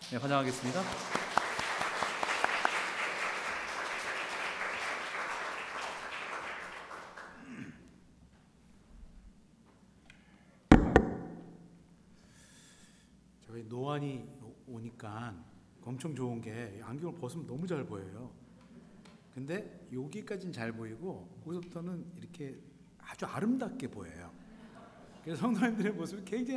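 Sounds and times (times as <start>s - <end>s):
speech: 0.1s - 1.2s, 15.0s - 18.5s, 19.4s - 24.4s, 25.2s - 26.5s
crowd applause: 0.4s - 7.5s
sharp thump: 10.7s - 11.6s.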